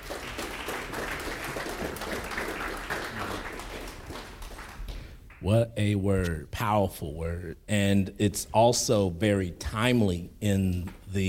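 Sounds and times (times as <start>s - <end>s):
audience applause, hand clapping: 0.0s - 5.2s
speech: 5.4s - 11.2s.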